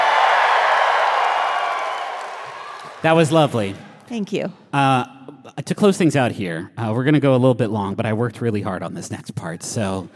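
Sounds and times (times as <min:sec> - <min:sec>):
studio audience cheering and applauding: 0:00.0 - 0:04.0
speech: 0:03.0 - 0:10.1.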